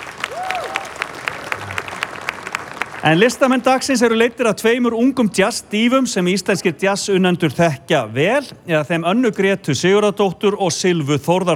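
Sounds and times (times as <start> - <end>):
audience applause at a summer jazz event on stage: 0.0 - 4.4
speech: 3.0 - 11.5.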